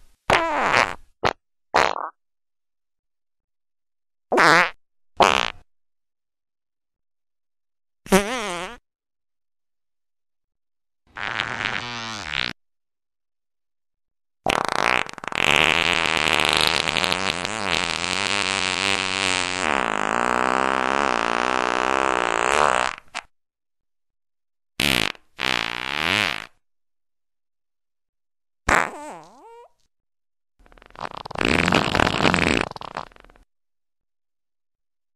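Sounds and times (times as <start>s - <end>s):
loud farts: 0.3s - 2.2s, 4.3s - 5.7s, 8.1s - 8.8s, 11.1s - 12.6s, 14.4s - 23.3s, 24.8s - 26.6s, 28.7s - 29.7s, 30.6s - 33.5s.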